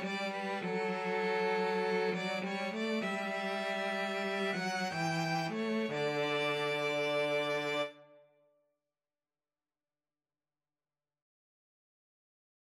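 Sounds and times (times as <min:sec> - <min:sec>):
violin and cello duet: 0:00.0 - 0:08.0.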